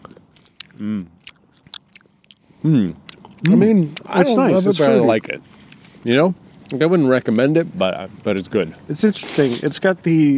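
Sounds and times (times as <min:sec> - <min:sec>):
chewing Tropical Twist fruit-and-mint gum: 0:00.0 - 0:04.3, 0:05.5 - 0:06.8
speech: 0:00.8 - 0:01.2, 0:02.6 - 0:10.3.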